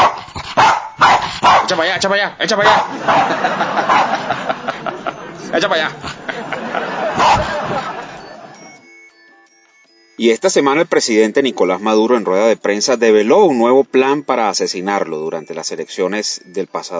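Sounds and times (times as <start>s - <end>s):
dog growling: 0.0s - 1.8s, 2.6s - 4.4s, 5.9s - 6.5s
dog barking and yipping: 0.0s - 1.9s, 2.6s - 4.4s, 6.8s - 7.8s
speech: 1.7s - 4.7s, 5.4s - 7.9s, 10.2s - 16.9s
laughter: 2.6s - 8.9s.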